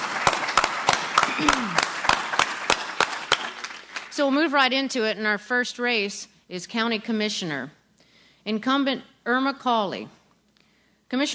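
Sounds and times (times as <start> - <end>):
audience applause: 0.0 - 4.2
speech: 1.4 - 1.9, 4.2 - 7.8, 8.4 - 10.2, 11.1 - 11.3.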